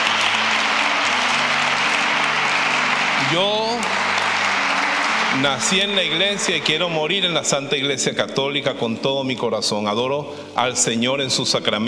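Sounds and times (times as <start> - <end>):
large audience applause: 0.0 - 7.5
speech: 3.3 - 4.0, 5.4 - 11.8.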